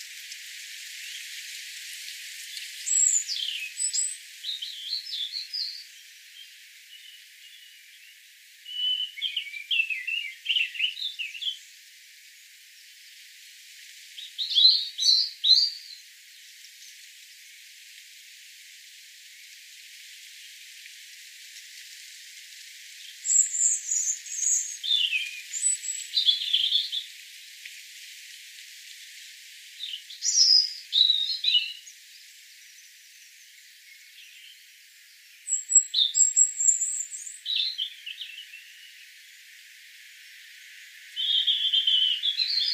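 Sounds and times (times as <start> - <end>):
European robin singing: 2.4 - 11.7, 14.2 - 16.1, 23.0 - 27.1, 29.8 - 32.1, 32.7 - 39.1, 41.2 - 42.7.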